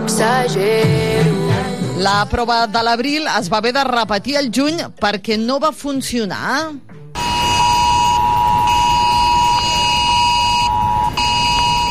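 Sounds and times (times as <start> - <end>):
speech: 0.1 - 1.4, 2.0 - 6.9
mobile phone emergency alert tone: 7.2 - 11.8.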